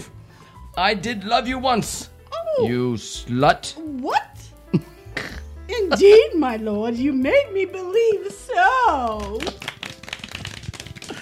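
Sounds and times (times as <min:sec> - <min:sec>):
speech: 0:00.8 - 0:04.9, 0:05.9 - 0:09.7
theatre audience clapping during a stage play: 0:08.9 - 0:11.1.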